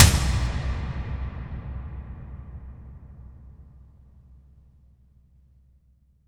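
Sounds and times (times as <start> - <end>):
cinematic tom drum impact: 0.0 - 4.6.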